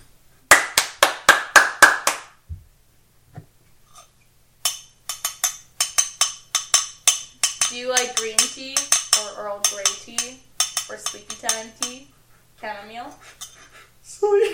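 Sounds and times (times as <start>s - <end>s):
two people clapping aggressively: 0.5s - 2.4s
speech: 7.8s - 14.5s.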